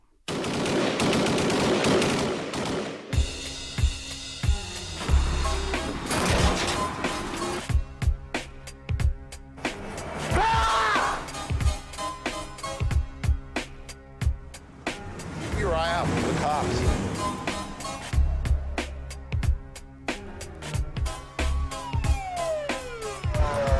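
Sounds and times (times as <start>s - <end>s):
gunfire-like bursts and crashes: 0.3s - 3.4s, 5.8s - 7.7s
film trailer music: 3.2s - 23.7s
voices speaking: 15.5s - 17.4s.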